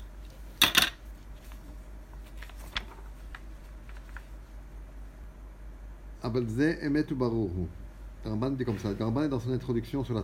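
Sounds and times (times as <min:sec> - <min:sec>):
book being opened with papery rustling: 0:01.2 - 0:04.6
speech: 0:06.3 - 0:10.2.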